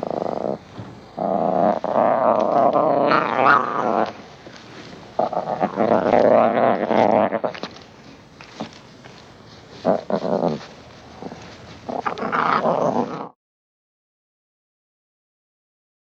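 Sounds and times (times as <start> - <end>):
lion growling: 0.0 - 7.8, 9.8 - 13.4.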